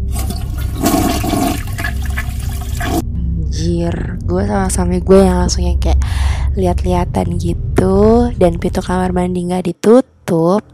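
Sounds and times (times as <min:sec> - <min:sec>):
toilet flushing: 0:00.0 - 0:03.0
speech: 0:03.7 - 0:10.7.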